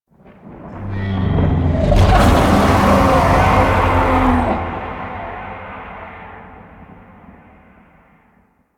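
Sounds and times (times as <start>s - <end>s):
distant idle void dragon vocal: 0.7s - 6.2s.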